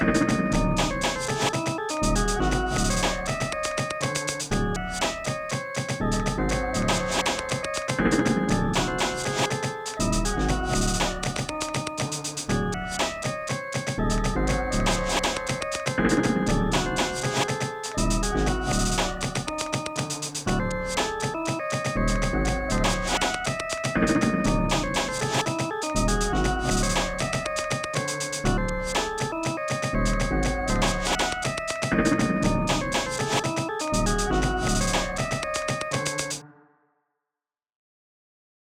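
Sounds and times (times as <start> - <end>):
chirpy breakbeat: 0.0 - 36.4.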